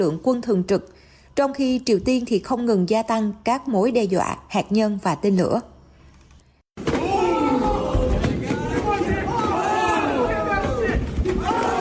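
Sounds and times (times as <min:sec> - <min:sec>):
speech: 0:00.0 - 0:05.7
crowd at humanoid robot fight: 0:06.8 - 0:11.7.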